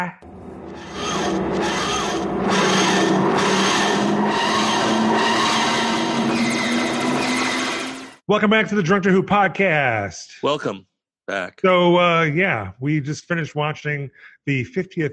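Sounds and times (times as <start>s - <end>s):
speech: 0.0s - 1.7s, 8.3s - 15.1s
steady low hum rising in pitch: 0.2s - 8.0s
TARDIS dematerialising grinding wheeze: 0.6s - 7.6s.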